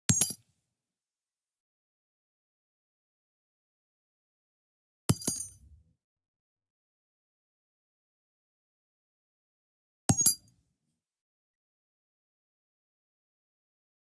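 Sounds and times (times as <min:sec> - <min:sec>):
50 BMG casing on dirt: 0:05.1 - 0:05.6, 0:10.1 - 0:10.5.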